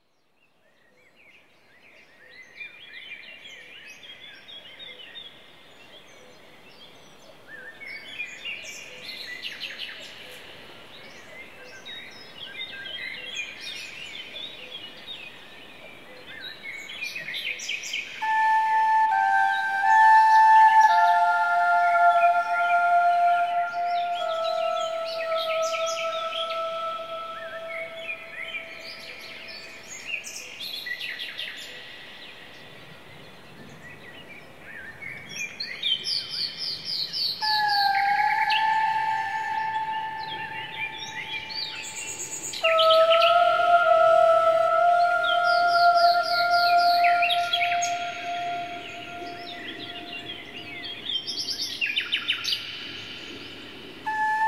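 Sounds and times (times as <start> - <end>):
hypnotic therapy music: 18.2 - 30.1, 37.4 - 51.2, 54.1 - 54.4.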